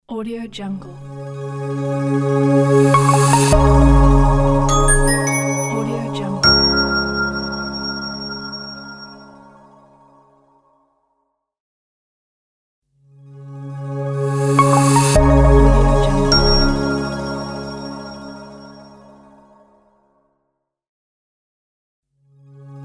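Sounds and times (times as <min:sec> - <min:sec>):
business logo jingle: 0:01.2 - 0:09.9, 0:14.3 - 0:19.0.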